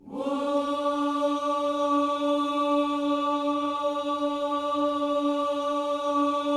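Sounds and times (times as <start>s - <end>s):
gospel vocal shout: 0.0s - 6.5s.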